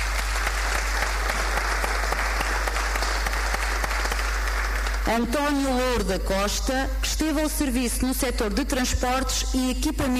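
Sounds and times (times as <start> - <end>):
audience applause: 0.0 - 5.1
speech: 5.1 - 10.1.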